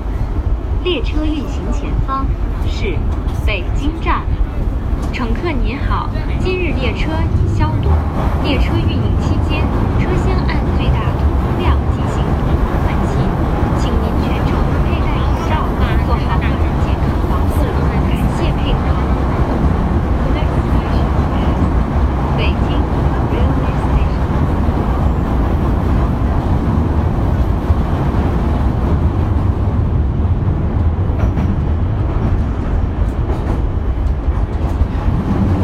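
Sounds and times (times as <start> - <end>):
Beijing Subway Line 2 moving train rumble: 0.0 - 35.6
voices on Beijing Subway Line 2: 0.8 - 24.8.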